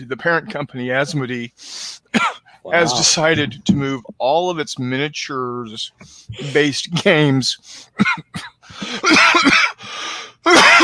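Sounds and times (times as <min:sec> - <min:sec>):
speech: 0:00.0 - 0:09.8, 0:10.4 - 0:10.8
person coughing: 0:02.1 - 0:03.2, 0:08.0 - 0:09.8, 0:10.5 - 0:10.8.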